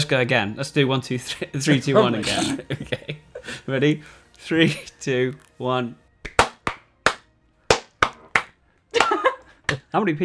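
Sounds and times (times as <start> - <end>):
laughter: 0.0 - 5.4, 8.9 - 9.9
speech: 0.1 - 6.0, 9.9 - 10.2
rhythmic hand clapping: 6.2 - 10.0.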